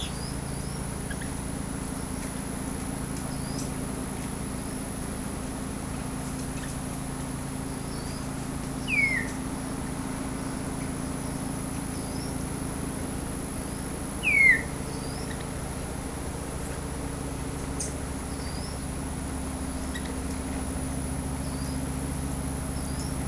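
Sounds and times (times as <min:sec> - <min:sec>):
steady low hum: 0:00.0 - 0:23.2
downslurred bird whistle: 0:08.8 - 0:09.4, 0:14.2 - 0:15.4.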